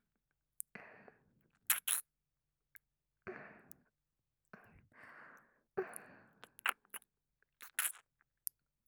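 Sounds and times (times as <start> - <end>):
ASMR ear kissing: 1.7 - 2.0, 6.6 - 7.0, 7.6 - 8.0.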